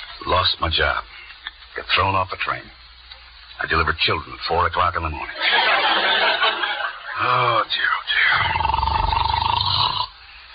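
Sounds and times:
speech: 0.2s - 1.2s, 1.8s - 2.8s, 3.6s - 8.9s
laughter: 5.3s - 7.6s
man snoring in bed: 8.2s - 10.2s.

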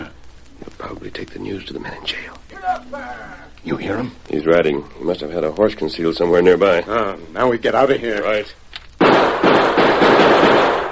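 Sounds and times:
speech: 0.9s - 8.6s
gunshots fired into a barrel: 9.0s - 10.9s.

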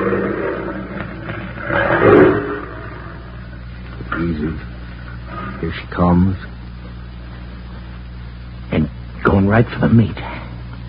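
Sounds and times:
big wild cat growling: 0.0s - 3.3s
speech: 5.6s - 6.6s, 9.5s - 10.4s.

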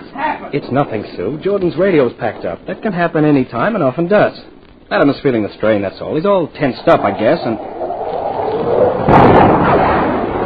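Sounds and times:
speech: 0.5s - 7.8s
F-92K jet rumbling roar: 6.6s - 10.4s
sonic boom from an F-92K jet breaking the sound barrier in a dive: 6.6s - 10.4s.

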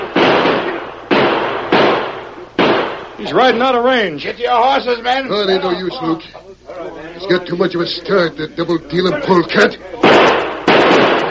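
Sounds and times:
gunshots: 0.0s - 3.6s, 10.0s - 11.2s
speech: 3.2s - 10.3s.

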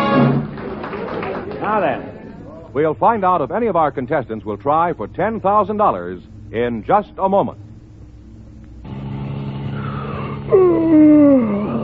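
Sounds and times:
speech: 1.7s - 2.2s, 2.8s - 7.7s, 10.5s - 11.6s
yawn: 9.7s - 11.8s.

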